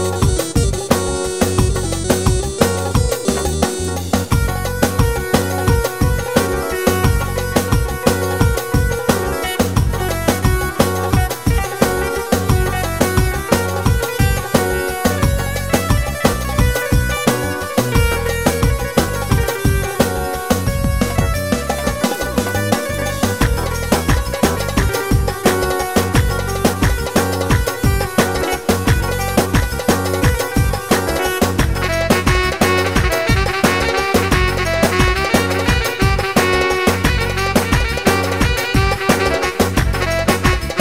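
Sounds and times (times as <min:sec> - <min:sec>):
keyboard ciftetelli rhythm pattern: 0:00.0 - 0:40.8.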